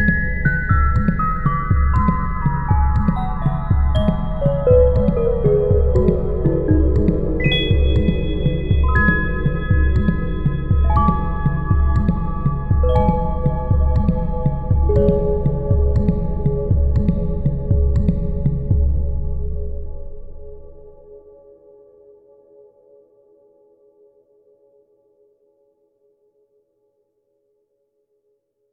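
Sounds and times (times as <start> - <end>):
chill jungle music: 0.0 - 22.9.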